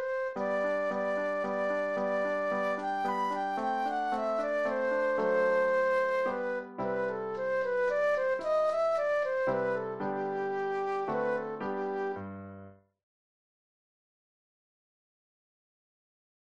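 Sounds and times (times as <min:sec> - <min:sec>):
classical minuet flute solo: 0:00.0 - 0:12.4.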